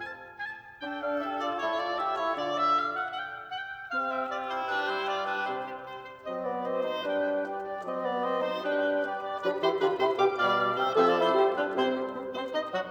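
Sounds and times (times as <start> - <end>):
two oboes playing: 0.0 - 12.8.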